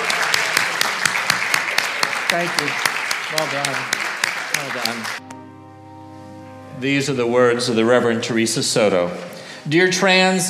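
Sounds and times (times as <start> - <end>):
audience applause: 0.0 - 5.2
speech: 2.3 - 4.0, 4.6 - 5.4, 6.8 - 10.4.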